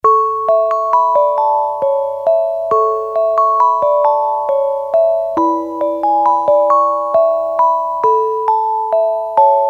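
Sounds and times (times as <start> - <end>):
Christmas music box melody: 0.0 - 9.6.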